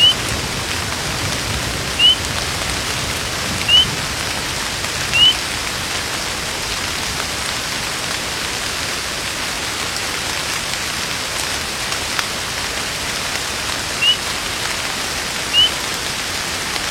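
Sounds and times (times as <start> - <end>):
wilderness rain shower hissing: 0.0 - 16.8
thin rising bird chirps: 14.0 - 14.2.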